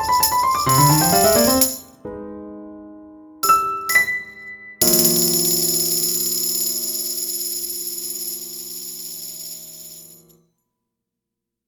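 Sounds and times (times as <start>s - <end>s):
piano piece: 0.0s - 6.0s.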